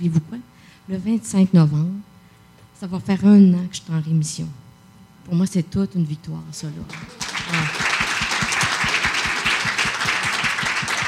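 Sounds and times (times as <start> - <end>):
speech: 0.0 - 2.1, 2.8 - 4.6, 5.3 - 7.7
applause: 6.9 - 11.0.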